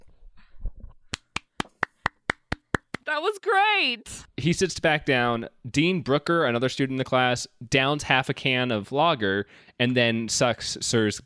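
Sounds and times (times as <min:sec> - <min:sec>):
hand clapping: 0:01.1 - 0:03.1
speech: 0:03.1 - 0:11.2.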